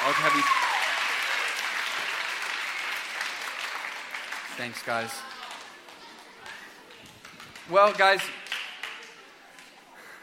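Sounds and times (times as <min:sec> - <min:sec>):
audience applause: 0:00.0 - 0:09.2
speech: 0:00.1 - 0:00.7, 0:04.6 - 0:05.3, 0:07.7 - 0:08.4.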